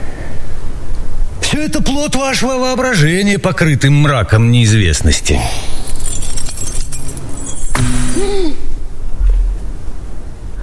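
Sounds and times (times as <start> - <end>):
speech: 1.5 - 5.8
bunch of keys tossed down: 5.1 - 8.6.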